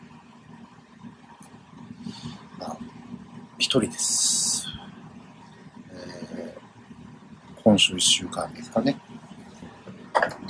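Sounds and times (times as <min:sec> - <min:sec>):
ventilation fan running: 0:00.0 - 0:10.4
speech: 0:03.6 - 0:04.5, 0:07.7 - 0:09.1.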